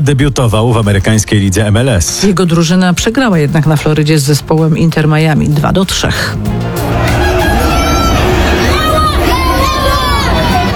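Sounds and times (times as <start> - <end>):
speech: 0.0 - 7.2
fans shouting greetings to footballer Robert Lewandowski in Florida: 6.7 - 10.7.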